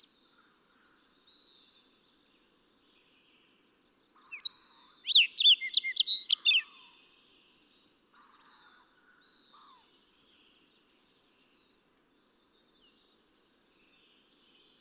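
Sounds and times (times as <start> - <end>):
fox sparrow calling: 4.2 - 6.8.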